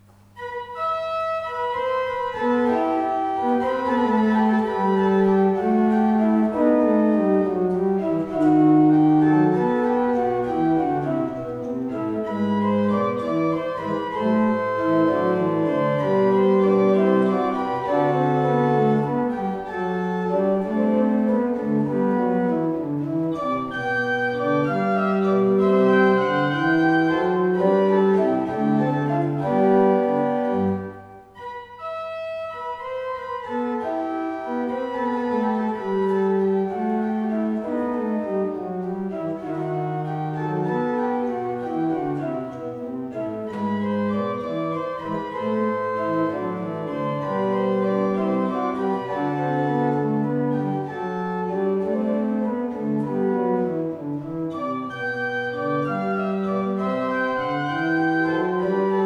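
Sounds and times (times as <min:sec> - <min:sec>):
organ suite in E minor: 0:00.0 - 0:59.0.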